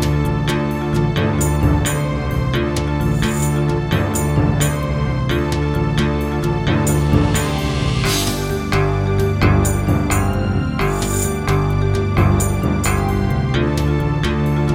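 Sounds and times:
wavetable synthesizer in GS mode: 0:00.0 - 0:14.7.

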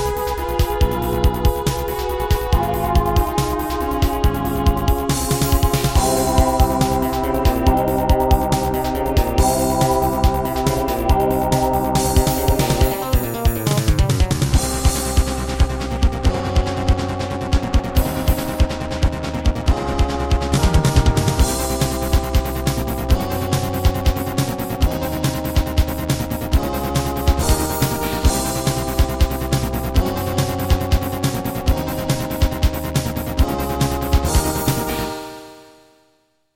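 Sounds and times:
Roland SC-7 sound module music: 0:00.0 - 0:35.8.

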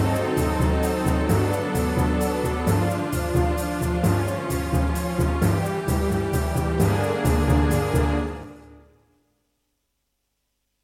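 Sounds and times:
wavetable synthesizer music in XG mode: 0:00.0 - 0:08.7.

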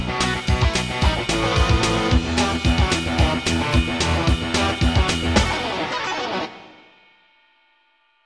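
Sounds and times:
sound module music in GM2 mode: 0:00.2 - 0:06.8.

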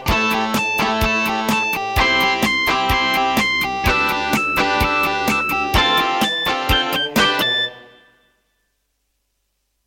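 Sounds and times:
sound module synthesizer wave tone: 0:00.2 - 0:08.3.

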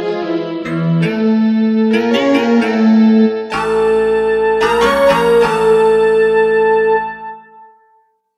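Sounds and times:
Casio LD-80 drum machine: 0:00.7 - 0:06.5.

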